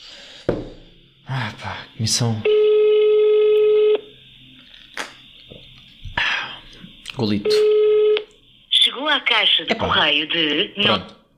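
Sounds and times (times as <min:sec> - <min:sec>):
speech: 0:00.5 - 0:02.6, 0:07.2 - 0:07.8, 0:09.1 - 0:11.2
telephone ringback tone on an unanswered call: 0:02.3 - 0:04.1, 0:07.4 - 0:08.3.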